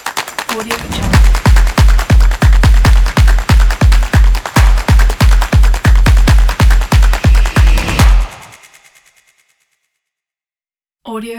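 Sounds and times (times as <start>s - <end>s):
percussion kit: 0.0s - 9.0s.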